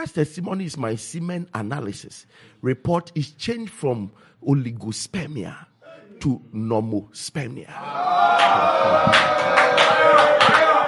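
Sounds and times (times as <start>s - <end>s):
speech: 0.0s - 10.8s
audience clapping: 8.3s - 10.8s.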